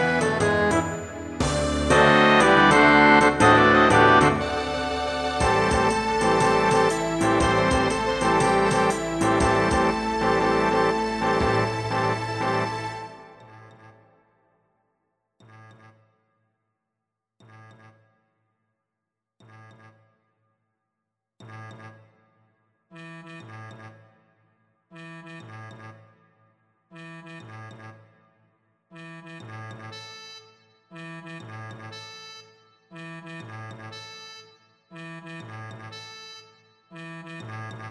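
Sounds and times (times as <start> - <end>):
sinfonia: 0.0 - 13.6.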